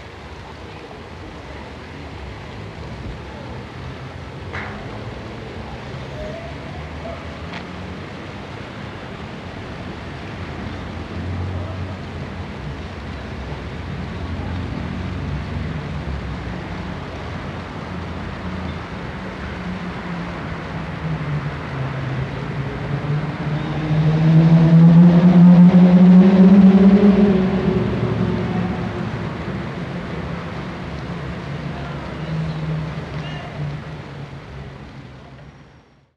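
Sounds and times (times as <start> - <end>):
motorcycle at a street arts event: 21.0 - 30.4.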